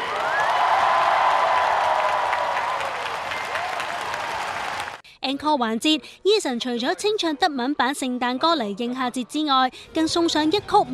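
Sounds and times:
audience applause at concert: 0:00.0 - 0:05.0
speech: 0:05.3 - 0:10.9.

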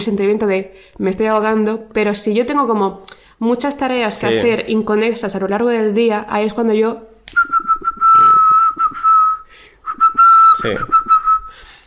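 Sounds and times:
speech: 0:00.0 - 0:07.6, 0:10.6 - 0:11.0
person whistling to call birds: 0:07.4 - 0:11.7.

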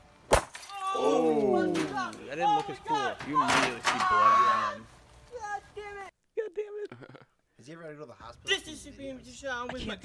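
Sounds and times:
glass light bulbs smashing on a chair: 0:00.3 - 0:01.1
speech: 0:01.0 - 0:05.0, 0:07.0 - 0:10.0.

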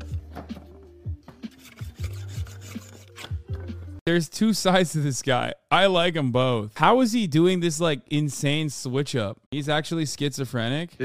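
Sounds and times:
spokeshave shaping a wooden handle for a vintage axe head: 0:01.5 - 0:03.3
speech: 0:04.1 - 0:11.0.

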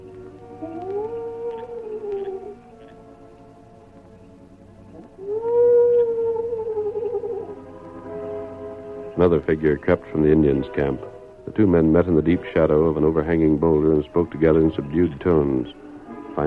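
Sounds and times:
low mournful owl cry at night: 0:00.0 - 0:04.0, 0:04.8 - 0:09.2
quiet hum: 0:00.0 - 0:16.4
speech: 0:09.2 - 0:15.8.

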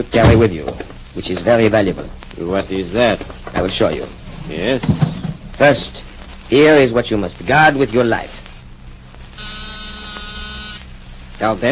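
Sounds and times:
speech: 0:00.0 - 0:08.4, 0:11.4 - 0:11.7
door buzzer buzzing: 0:09.4 - 0:10.9.

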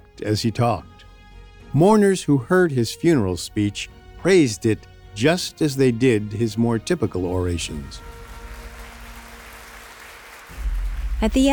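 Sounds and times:
speech: 0:00.2 - 0:01.0, 0:01.7 - 0:08.2, 0:11.2 - 0:11.5
crowd applause at end of a eulogy: 0:07.8 - 0:11.5.

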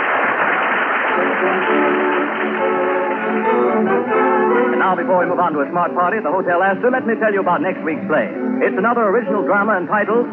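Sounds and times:
theatre audience applause: 0:00.0 - 0:05.6
speech: 0:04.8 - 0:10.3.

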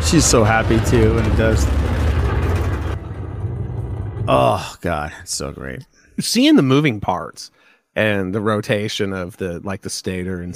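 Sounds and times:
engine roar: 0:00.0 - 0:04.6
speech: 0:00.1 - 0:02.0, 0:04.3 - 0:10.5.

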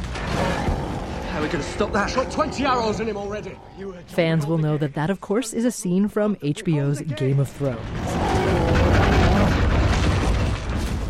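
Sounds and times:
giant's roar: 0:00.1 - 0:04.2, 0:07.9 - 0:10.0
speech: 0:01.4 - 0:08.2.

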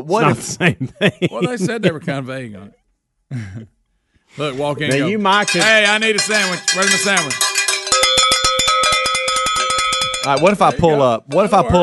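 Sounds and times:
speech: 0:00.0 - 0:07.4, 0:10.2 - 0:11.8
laughter: 0:00.2 - 0:02.7, 0:03.3 - 0:03.8
cowbell ringing: 0:04.8 - 0:11.8.

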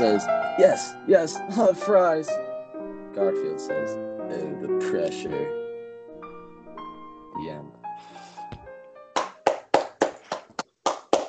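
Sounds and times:
speech: 0:00.0 - 0:02.5, 0:03.2 - 0:05.6, 0:07.4 - 0:07.8
audience clapping after a reading: 0:09.2 - 0:11.2.

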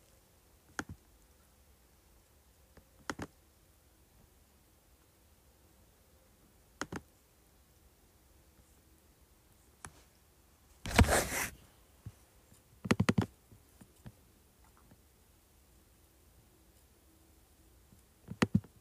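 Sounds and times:
computer keyboard clicks: 0:00.8 - 0:01.0, 0:03.0 - 0:03.3, 0:06.8 - 0:07.1, 0:12.8 - 0:13.3, 0:18.3 - 0:18.7.

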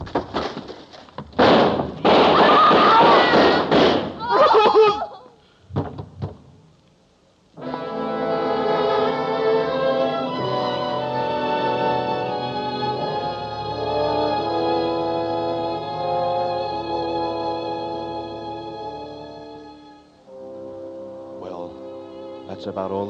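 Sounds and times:
gunshots fired by police: 0:01.4 - 0:04.2
orchestral music: 0:07.6 - 0:23.0
speech: 0:22.6 - 0:23.0.

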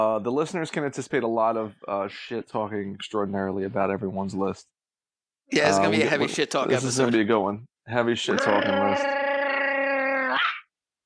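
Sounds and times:
speech: 0:00.0 - 0:04.7, 0:05.5 - 0:09.3
person imitating tiny dog biting shoe: 0:08.3 - 0:10.7.

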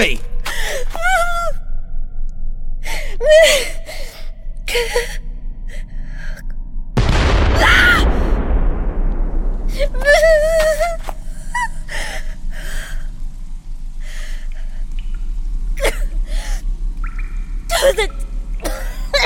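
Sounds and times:
low rumbling: 0:00.0 - 0:19.2
person coughing and gasping from choking on dust: 0:15.8 - 0:16.2, 0:17.7 - 0:19.2.

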